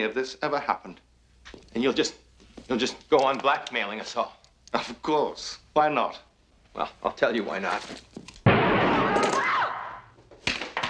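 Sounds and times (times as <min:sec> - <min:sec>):
speech: 0:00.0 - 0:01.0, 0:01.8 - 0:08.1
gunshot: 0:08.4 - 0:09.8.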